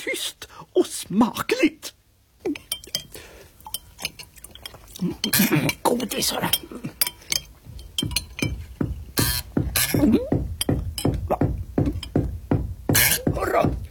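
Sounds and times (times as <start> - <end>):
speech: 0.0 - 2.6, 5.0 - 6.9, 10.0 - 10.4
knocking: 7.1 - 13.8.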